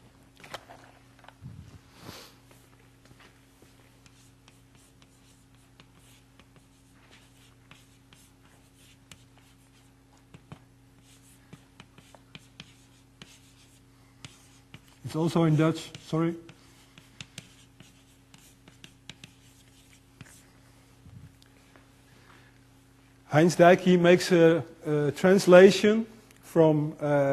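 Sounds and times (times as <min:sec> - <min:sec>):
low constant electrical hum: 0:00.0 - 0:27.3
handwriting with pen on paper: 0:04.1 - 0:14.9, 0:17.0 - 0:20.4
speech: 0:15.1 - 0:16.5, 0:23.4 - 0:27.3.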